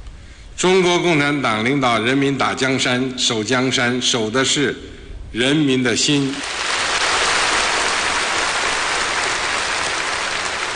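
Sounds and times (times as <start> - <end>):
speech: 0.6 - 6.6
loud sustained applause from a large crowd: 6.4 - 10.7.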